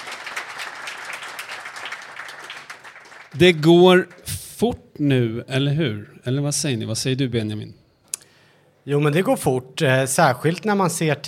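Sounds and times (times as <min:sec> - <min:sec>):
audience applause: 0:00.0 - 0:04.3
speech: 0:03.3 - 0:07.8, 0:08.8 - 0:11.2.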